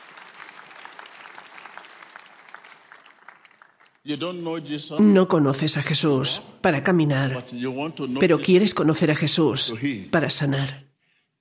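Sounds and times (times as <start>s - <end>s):
audience applause: 0.0s - 4.1s
speech: 4.0s - 10.9s.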